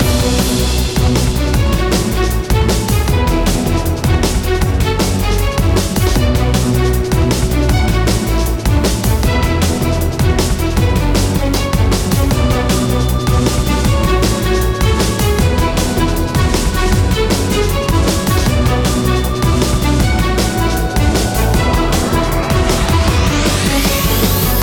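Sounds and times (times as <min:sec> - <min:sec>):
stormy music: 0:00.0 - 0:24.6.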